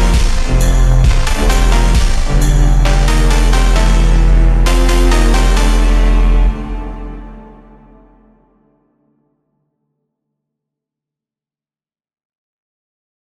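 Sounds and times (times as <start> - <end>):
slow Christmas phonk remix: 0.0 - 8.2.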